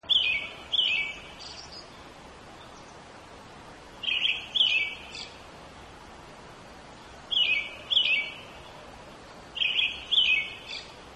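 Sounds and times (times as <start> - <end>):
brown-headed thrush song: 0.0 - 3.0, 4.0 - 5.4, 7.3 - 8.8, 9.5 - 11.0
faint steady hiss: 0.0 - 11.1.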